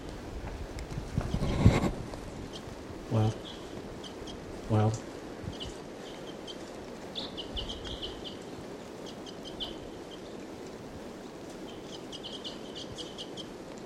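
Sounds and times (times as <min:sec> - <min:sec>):
low rushing noise: 0:00.0 - 0:13.8
wild bird calling in high-pitched chirps: 0:02.4 - 0:13.6
speech: 0:03.2 - 0:03.6.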